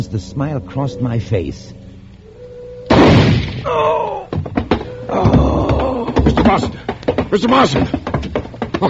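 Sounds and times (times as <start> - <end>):
speech: 0.0 - 1.8, 3.6 - 4.3, 6.2 - 8.1
shotgun firing in a radio drama: 2.9 - 3.7
sharp thumps: 2.9 - 8.8
vocal cry: 3.6 - 6.2.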